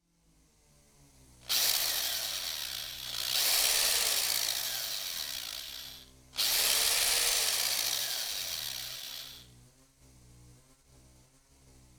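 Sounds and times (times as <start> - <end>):
drill: 1.5 - 9.5.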